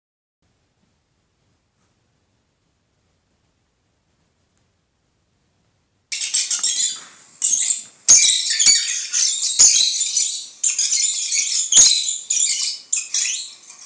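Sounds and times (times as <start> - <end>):
lovebird twittering song: 6.1 - 13.8.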